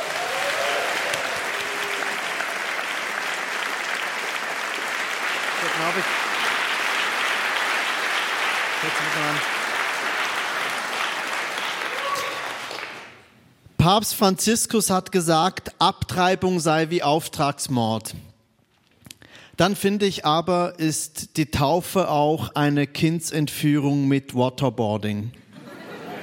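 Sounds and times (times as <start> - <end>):
audience applause: 0.0 - 13.2
speech: 5.8 - 6.3, 8.8 - 9.5, 13.8 - 18.3, 19.6 - 25.4
laughter: 25.5 - 26.2.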